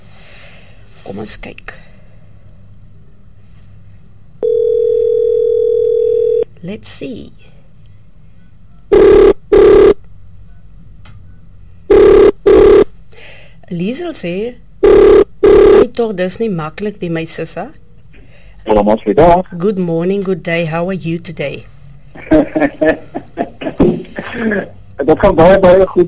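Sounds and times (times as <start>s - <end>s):
speech: 1.1s - 1.8s, 6.6s - 7.5s, 13.7s - 14.6s, 15.9s - 17.8s, 18.6s - 23.1s, 23.8s - 26.0s
telephone ringing: 4.4s - 6.4s, 8.9s - 10.0s, 11.9s - 12.8s, 14.8s - 15.9s
laughter: 22.2s - 24.8s.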